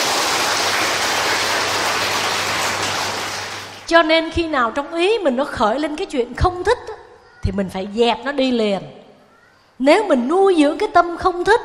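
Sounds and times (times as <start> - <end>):
crowd applauding: 0.0 - 3.9
speech: 3.9 - 9.0, 9.8 - 11.6.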